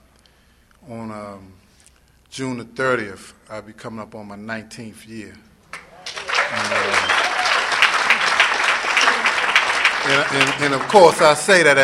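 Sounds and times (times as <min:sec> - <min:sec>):
speech: 0:00.9 - 0:01.6, 0:02.3 - 0:05.5, 0:10.0 - 0:11.8
audience clapping: 0:05.7 - 0:11.8.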